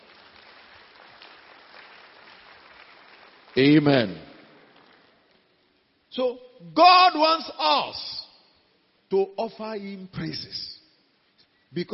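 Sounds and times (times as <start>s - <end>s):
audience clapping: 0.0s - 5.6s
speech: 3.6s - 4.3s, 6.2s - 8.2s, 9.1s - 10.8s, 11.7s - 11.9s.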